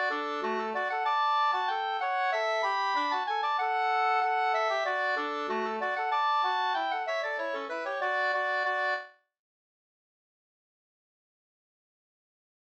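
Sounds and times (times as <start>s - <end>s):
folk dance music: 0.0s - 9.0s.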